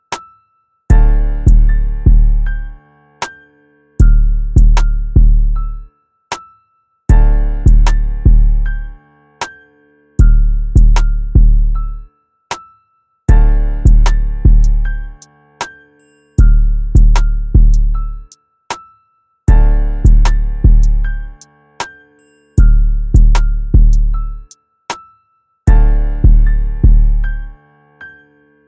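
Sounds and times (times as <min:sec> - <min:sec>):
instrumental type beat: 0:00.9 - 0:03.4, 0:04.0 - 0:05.6, 0:07.1 - 0:09.6, 0:10.2 - 0:11.8, 0:13.3 - 0:15.8, 0:16.4 - 0:18.4, 0:19.5 - 0:22.0, 0:22.6 - 0:24.6, 0:25.7 - 0:27.4.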